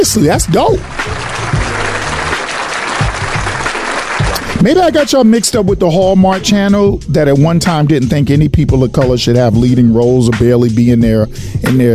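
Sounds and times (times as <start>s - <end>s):
speech: 0.0s - 1.3s, 4.6s - 11.9s
applause: 0.0s - 4.6s.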